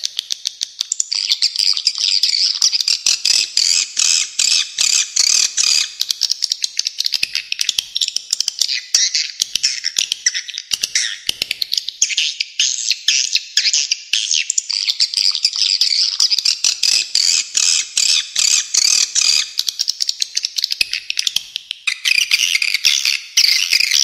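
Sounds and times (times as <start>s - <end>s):
swiftlet twittering calls: 0.0s - 24.0s.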